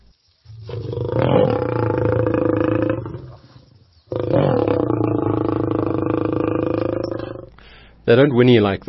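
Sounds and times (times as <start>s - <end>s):
lion growling: 0.6s - 7.5s
speech: 8.1s - 8.8s.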